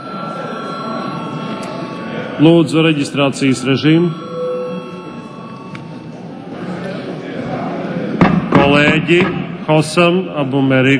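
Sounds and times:
parliament session bell ringing: 0.0 - 7.8
speech: 2.4 - 4.2, 9.1 - 10.9.

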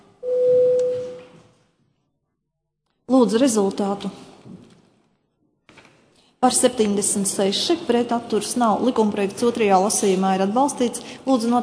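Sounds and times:
parliamentary voting signal tone: 0.2 - 1.4
speech: 3.2 - 4.6, 6.4 - 11.6.

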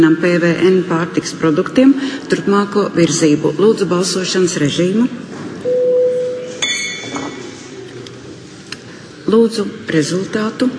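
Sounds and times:
speech: 0.0 - 5.4, 9.3 - 10.7
chairman's bell ringing: 5.7 - 7.2.

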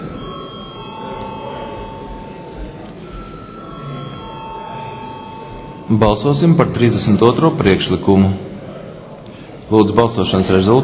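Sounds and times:
parliament chairman's bell ringing: 0.0 - 7.3
murmur of chatter in the chamber: 0.0 - 10.8
speech: 5.9 - 8.5, 9.7 - 10.8.

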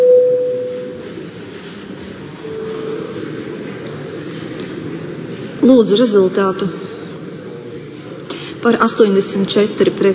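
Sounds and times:
parliament voting signal tone: 0.0 - 1.0
faint murmur: 0.4 - 10.1
speech: 5.6 - 6.9, 8.6 - 10.1.

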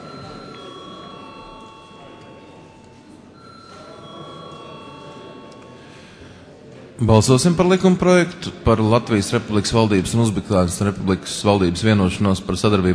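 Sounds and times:
bell signalling a parliamentary vote: 0.0 - 6.2
low murmur of voices: 0.0 - 12.9
speech: 7.0 - 12.9.

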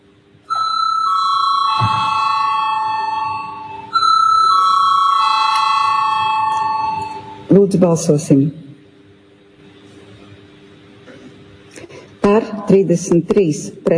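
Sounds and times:
parliament voting bell ringing: 0.5 - 7.5
speech: 7.6 - 8.6, 12.8 - 13.9.

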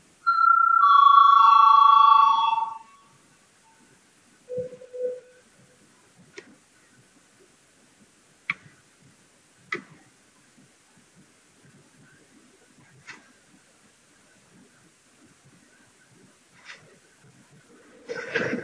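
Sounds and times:
parliament voting call bell: 0.2 - 3.1.

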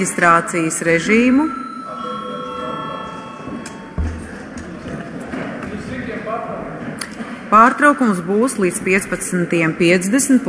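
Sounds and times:
speech: 0.0 - 2.1, 7.5 - 10.4
murmur of many voices: 0.0 - 10.4
parliament session bell ringing: 1.0 - 4.6.

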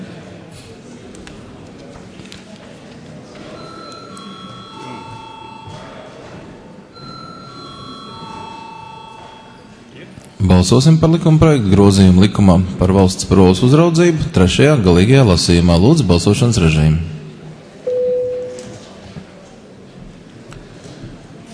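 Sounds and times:
murmur of voices: 0.0 - 21.5
parliament voting bell chimes: 3.6 - 6.1, 6.9 - 9.8, 17.9 - 18.7
speech: 10.4 - 17.1.

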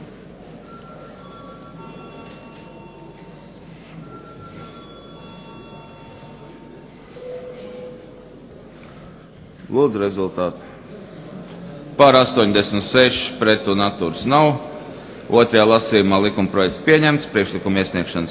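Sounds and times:
murmur of voices: 0.0 - 18.2
parliament voting bell ringing: 0.6 - 8.5
speech: 9.7 - 10.7, 12.0 - 14.7, 15.3 - 18.2.

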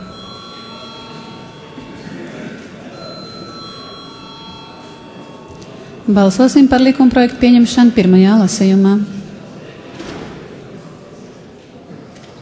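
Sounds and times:
parliament voting bell ringing: 0.0 - 7.9
soft murmur: 0.0 - 12.4
speech: 6.1 - 9.2.

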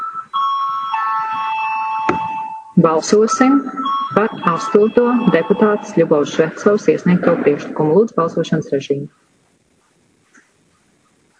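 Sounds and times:
electric bell ringing to call a vote: 0.3 - 6.3
speech: 2.8 - 9.2.

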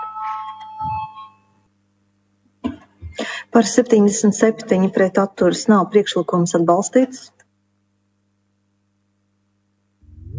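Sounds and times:
parliament voting bell ringing: 0.0 - 1.6
speech: 3.6 - 7.4.

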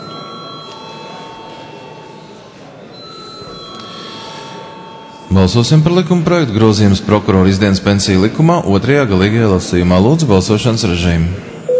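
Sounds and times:
parliament chamber electric bell ringing before vote: 0.0 - 5.8
speech: 5.4 - 11.6.

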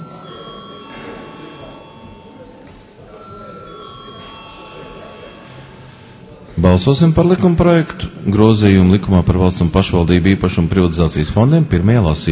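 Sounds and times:
electric bell ringing in a parliament chamber to call a vote: 0.0 - 7.2
murmur of voices: 0.0 - 12.2
speech: 6.6 - 12.2.

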